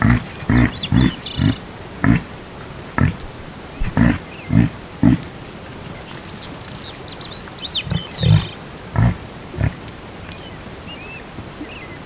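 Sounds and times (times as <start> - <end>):
reindeer grunting and clicking: 0.0 - 5.4, 7.8 - 10.5.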